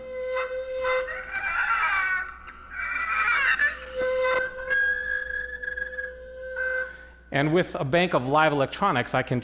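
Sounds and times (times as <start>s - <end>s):
violin bow played on invented instrument: 0.0s - 7.2s
speech: 7.3s - 9.4s.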